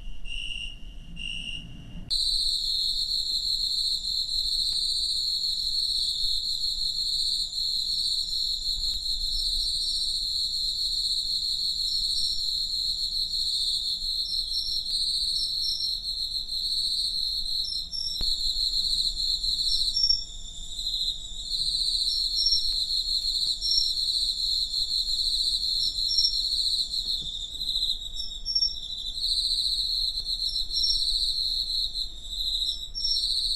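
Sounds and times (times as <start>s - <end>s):
cricket trill: 0.0s - 33.5s.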